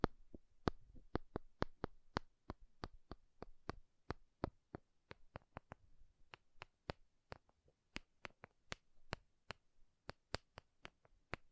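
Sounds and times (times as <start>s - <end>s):
makeup tapping: 0.0s - 11.5s.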